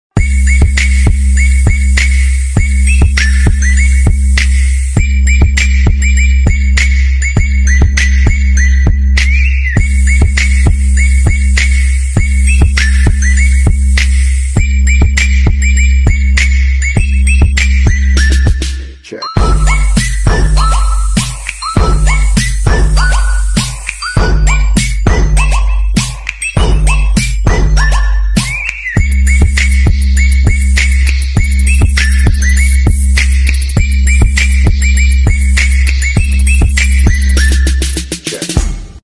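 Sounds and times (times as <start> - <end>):
christmas song remix: 0.1 - 39.0.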